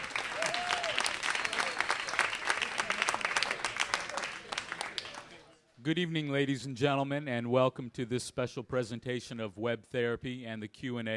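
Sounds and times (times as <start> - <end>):
audience applause: 0.0 - 5.4
speech: 5.8 - 11.1.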